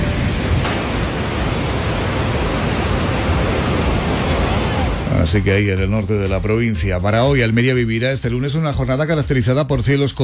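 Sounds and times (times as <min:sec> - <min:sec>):
rain falling: 0:00.0 - 0:05.2
speech: 0:05.3 - 0:10.2.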